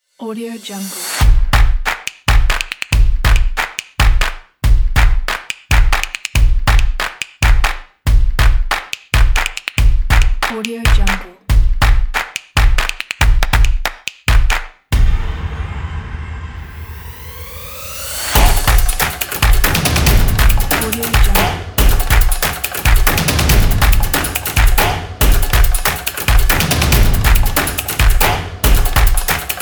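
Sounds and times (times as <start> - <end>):
action drums: 1.2 - 15.9, 16.7 - 29.5
claps: 1.5 - 14.8, 18.4 - 29.5.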